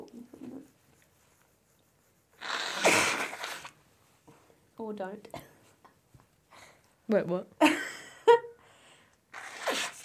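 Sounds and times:
person blowing nose into a tissue: 2.4 - 3.8, 9.3 - 10.0
speech: 4.9 - 5.5, 7.1 - 7.8.

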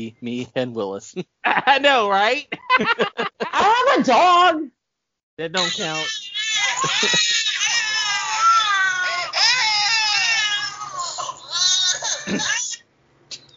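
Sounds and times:
speech: 0.0 - 4.8, 5.4 - 7.3
laughter: 1.5 - 4.0, 6.6 - 8.4, 11.9 - 12.6
baby crying and whimpering: 5.6 - 12.8.

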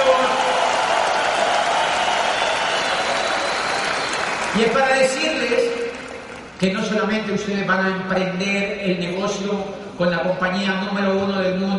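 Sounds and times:
audience applause ovation: 0.0 - 6.6
speech: 4.6 - 5.8, 6.6 - 11.7.

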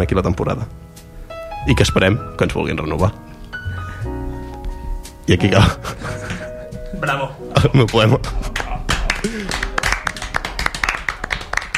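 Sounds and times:
speech: 0.0 - 1.0, 1.6 - 3.3, 5.3 - 6.2, 7.0 - 8.5
studio applause: 8.2 - 11.7.

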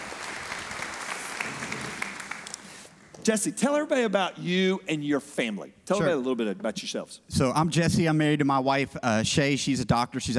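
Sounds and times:
audience applause: 0.0 - 2.9
speech: 3.2 - 10.3.

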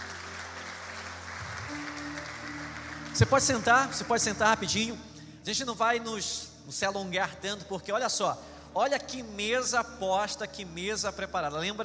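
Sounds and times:
audience applause: 0.0 - 4.5
speech: 3.2 - 11.8.

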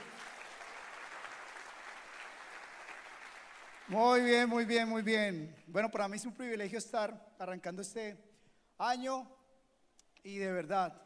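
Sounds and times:
audience applauding: 0.0 - 4.3
speech: 3.9 - 9.4, 10.2 - 11.0.

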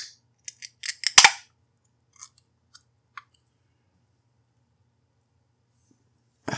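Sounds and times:
beer can being cracked open: 0.0 - 1.4.

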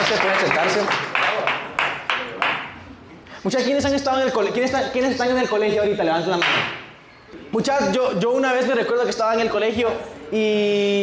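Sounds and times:
audience applause: 0.0 - 2.6
speech: 0.1 - 1.6, 3.4 - 6.8, 7.5 - 11.0.

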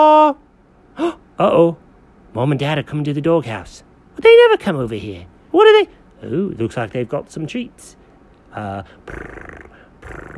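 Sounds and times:
speech: 0.0 - 0.4, 1.0 - 10.3
cat purring: 9.1 - 10.3.

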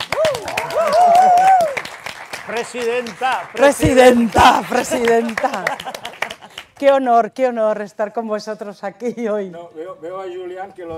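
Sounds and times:
audience applause: 0.0 - 6.8
speech: 2.6 - 6.1, 6.8 - 10.9.

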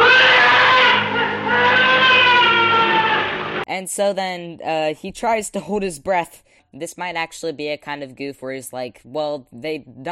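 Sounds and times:
person screaming in horror: 0.0 - 3.6
speech: 3.8 - 10.1.

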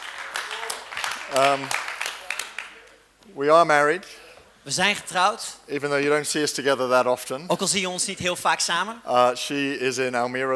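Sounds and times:
audience applause: 0.0 - 2.8
speech: 1.3 - 1.8, 3.3 - 10.5.

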